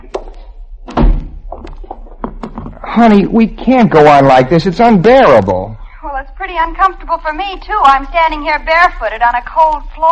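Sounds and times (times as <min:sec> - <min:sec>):
door shutting: 0:00.8 - 0:01.4
speech: 0:03.0 - 0:05.7, 0:06.5 - 0:10.1.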